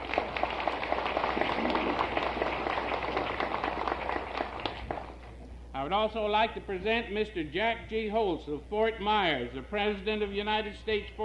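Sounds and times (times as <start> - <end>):
audience applause: 0.0 - 5.2
speech: 5.9 - 11.2.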